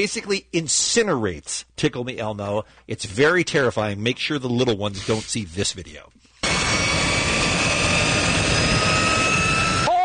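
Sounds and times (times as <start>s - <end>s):
speech: 0.0s - 6.9s
jet engine firing up: 6.4s - 9.9s.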